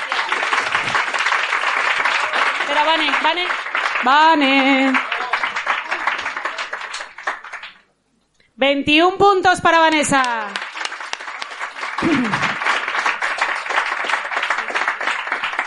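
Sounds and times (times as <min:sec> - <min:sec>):
crowd applause: 0:00.0 - 0:07.9, 0:10.2 - 0:15.6
speech: 0:02.8 - 0:05.0, 0:08.6 - 0:10.6.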